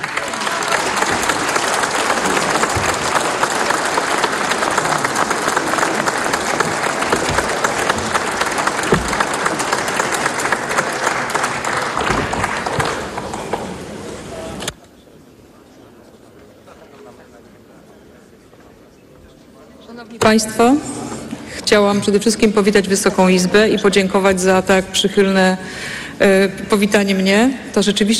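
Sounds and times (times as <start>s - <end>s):
applause in the Polish parliament: 0.0s - 14.2s
speech: 20.3s - 20.8s, 21.7s - 28.1s.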